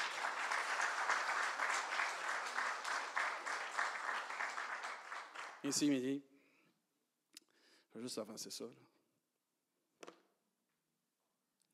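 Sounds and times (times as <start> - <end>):
audience applause: 0.0 - 5.9
speech: 5.6 - 6.3, 8.0 - 9.0.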